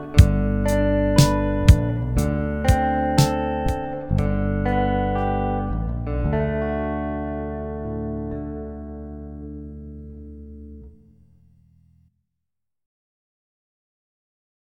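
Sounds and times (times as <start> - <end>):
G D chord melody: 0.0 - 10.9.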